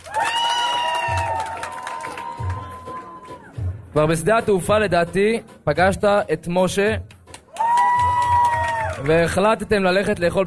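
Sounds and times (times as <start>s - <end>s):
audience applause: 0.0s - 3.5s, 7.5s - 9.3s
speech: 3.9s - 7.1s, 9.0s - 10.4s.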